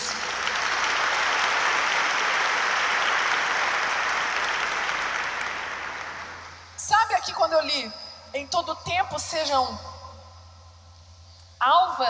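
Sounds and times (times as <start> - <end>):
audience applause: 0.0 - 6.6
speech: 7.2 - 9.9, 11.6 - 12.0.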